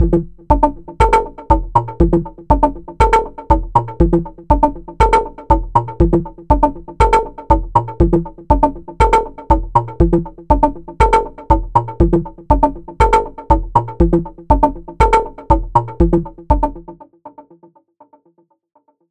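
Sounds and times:
bass drum through Dreadbox Drips V2 delay: 0:00.0 - 0:16.9.

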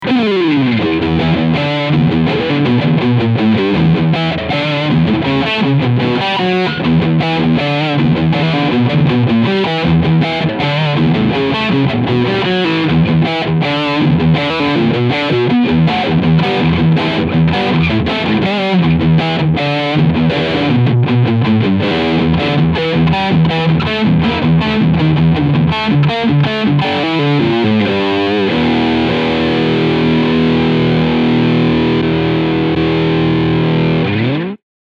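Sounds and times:
Fender American Professional II Stratocaster HSS humbucker guitar riff: 0:00.0 - 0:34.6.

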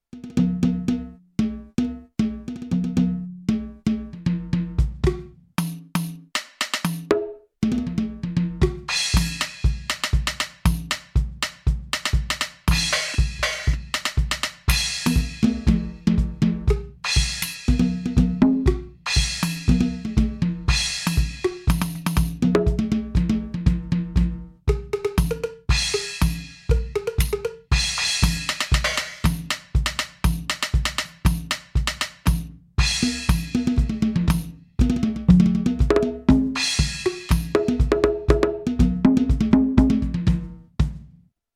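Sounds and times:
Millenium MPS 750 latin drum kit: 0:00.2 - 0:41.2.

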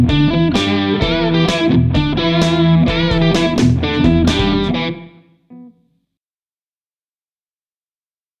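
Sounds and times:
Schecter Sun Valley Shredder electric guitar on bridge pickup: 0:00.0 - 0:05.8.

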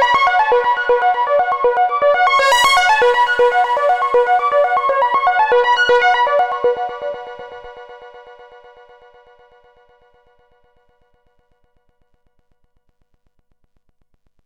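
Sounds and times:
mixed sequenced music: 0:00.0 - 0:10.4.

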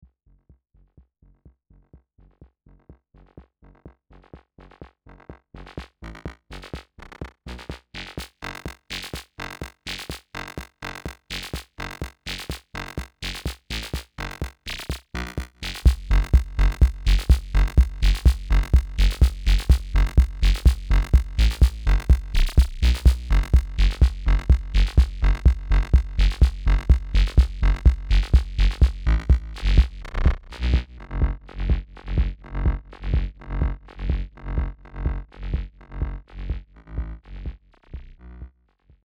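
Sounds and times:
mix bus filtered music: 0:15.6 - 0:37.8.

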